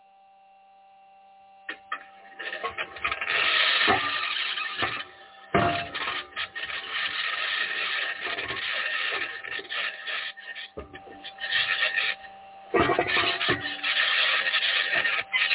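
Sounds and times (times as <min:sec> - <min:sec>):
faint steady hum: 0:00.0 - 0:15.5
sharp clanks and knocks: 0:01.7 - 0:10.0, 0:12.7 - 0:15.5
rover aluminum wheels scraping the Martian surface: 0:02.4 - 0:12.2, 0:12.8 - 0:15.5.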